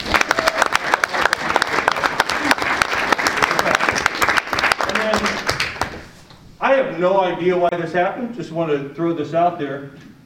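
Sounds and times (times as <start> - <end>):
applause: 0.0 - 6.0
speech: 7.0 - 10.1.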